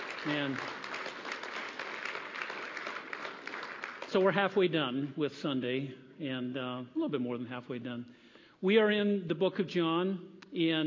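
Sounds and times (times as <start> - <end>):
audience applause: 0.0 - 4.3
speech: 0.2 - 0.8, 4.1 - 10.8.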